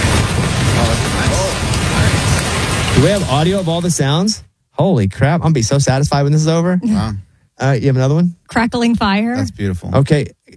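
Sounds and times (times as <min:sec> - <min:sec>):
rain pouring on a roof: 0:00.0 - 0:04.4
speech: 0:03.0 - 0:10.5.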